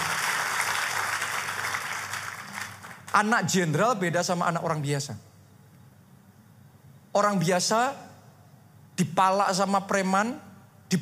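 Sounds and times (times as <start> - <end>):
audience applause: 0.0 - 3.1
speech: 3.1 - 5.3, 7.2 - 8.1, 9.0 - 11.0.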